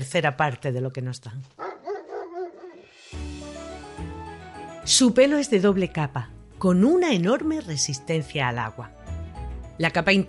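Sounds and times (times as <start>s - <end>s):
speech: 0.0s - 1.7s, 4.9s - 9.0s, 9.8s - 10.2s
dog barking: 1.6s - 2.8s.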